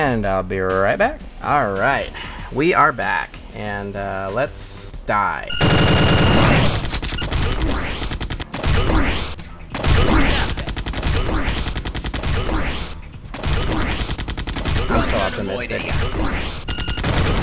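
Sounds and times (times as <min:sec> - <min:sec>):
speech: 0:00.1 - 0:06.8, 0:15.2 - 0:16.6
video game automatic gunfire: 0:05.5 - 0:15.3, 0:16.0 - 0:17.4.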